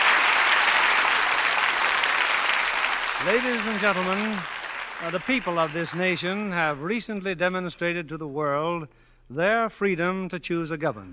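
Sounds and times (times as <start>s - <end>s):
audience applause: 0.0s - 6.6s
speech: 3.2s - 11.1s.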